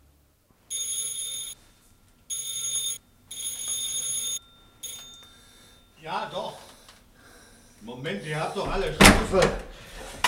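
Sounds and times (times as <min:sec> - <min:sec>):
bright electric doorbell ringing: 0:00.7 - 0:01.7, 0:02.3 - 0:06.6
speech: 0:06.1 - 0:06.6, 0:07.8 - 0:10.2.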